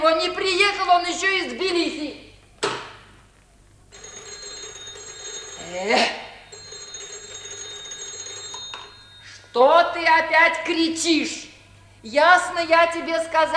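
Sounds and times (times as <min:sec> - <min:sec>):
speech: 0:00.2 - 0:02.3, 0:05.7 - 0:06.2, 0:09.6 - 0:13.5
telephone ringing: 0:03.9 - 0:10.0.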